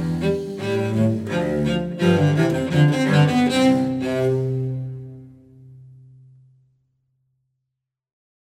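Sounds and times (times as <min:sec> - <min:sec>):
gavotte piece: 0:00.0 - 0:06.5.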